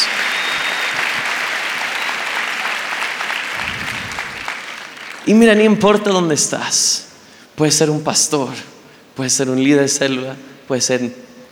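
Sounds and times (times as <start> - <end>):
audience applause: 0.0 - 5.6
speech: 5.3 - 11.3.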